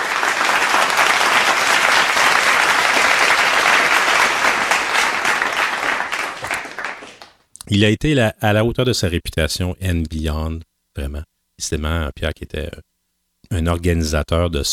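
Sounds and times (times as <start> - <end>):
audience applause: 0.0 - 7.4
speech: 7.7 - 14.7.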